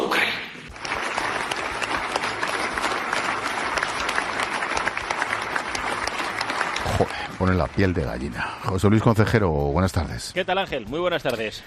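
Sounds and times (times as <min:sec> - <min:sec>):
standing ovation applause by deputies in parliament: 0:00.7 - 0:08.4
speech: 0:07.0 - 0:11.6.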